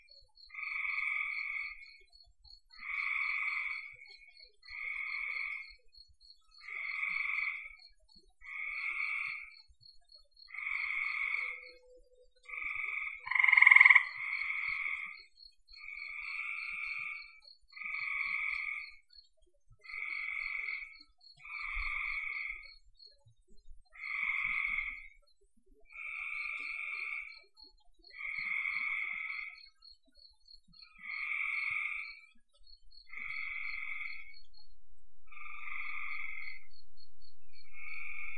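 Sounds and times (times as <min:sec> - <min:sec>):
frogs buzzy trilled calls: 0:00.0 - 0:23.2, 0:23.8 - 0:38.3
faint low rumbling: 0:32.8 - 0:38.3.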